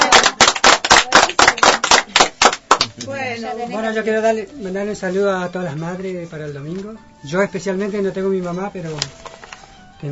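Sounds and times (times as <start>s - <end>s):
applause: 0.0s - 3.1s
speech: 3.0s - 9.3s.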